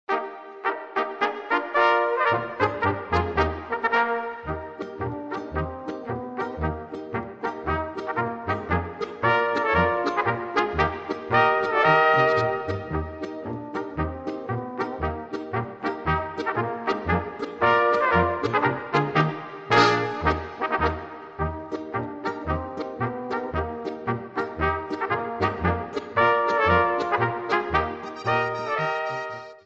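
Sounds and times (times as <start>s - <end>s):
polka music: 0.1s - 29.6s.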